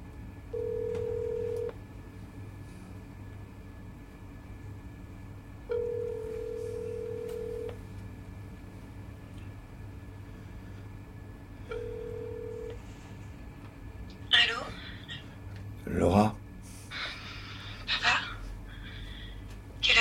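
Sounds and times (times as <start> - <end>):
low rumbling hum: 0.0 - 19.9
phone line ringing tone: 0.5 - 1.8, 5.7 - 7.8, 11.7 - 12.8.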